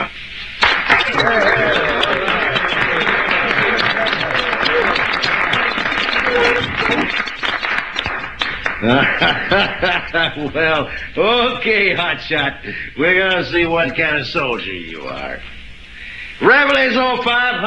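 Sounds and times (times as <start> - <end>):
crowd shouting and cheering: 0.6 - 9.6
crowd applauding: 0.6 - 15.0
laughter: 0.9 - 15.1
speech: 1.2 - 1.8, 8.8 - 15.5, 16.4 - 17.6.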